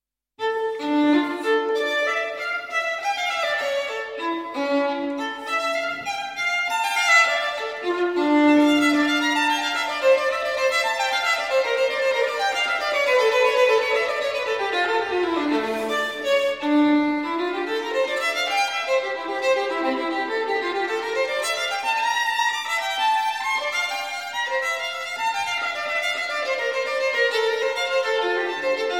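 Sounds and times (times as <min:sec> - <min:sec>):
solo violin partita: 0:00.4 - 0:28.9.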